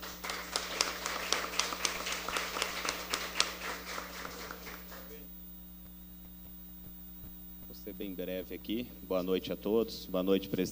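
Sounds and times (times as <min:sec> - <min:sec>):
audience applause: 0:00.0 - 0:05.3
low steady hum: 0:00.0 - 0:10.7
speech: 0:08.0 - 0:10.7.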